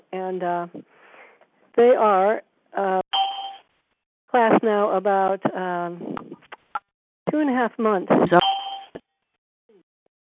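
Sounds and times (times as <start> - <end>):
speech: 0.1 - 1.0, 1.8 - 3.0, 4.3 - 6.5, 7.3 - 8.5
electronic two-tone beep: 8.4 - 9.0.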